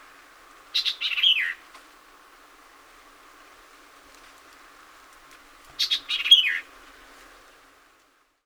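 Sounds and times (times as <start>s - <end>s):
White-eyed Vireo singing: 0.8s - 1.6s.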